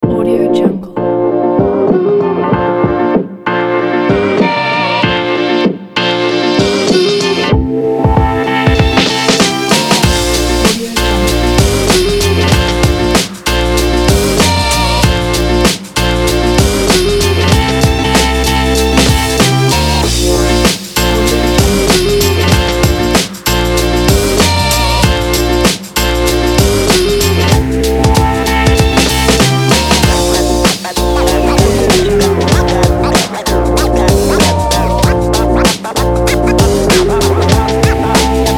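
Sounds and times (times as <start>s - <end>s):
hip hop music: 0.0s - 38.5s.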